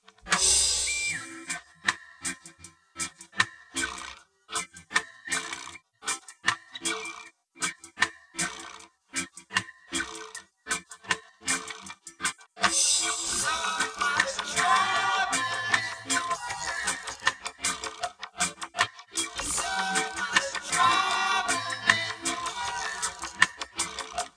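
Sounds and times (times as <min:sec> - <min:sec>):
percussion: 0:00.0 - 0:24.3.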